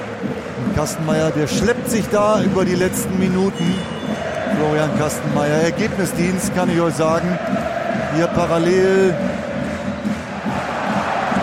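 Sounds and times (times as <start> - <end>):
football stadium crowd cheering during a relegation-battle match: 0.0 - 11.4
speech: 0.8 - 9.4.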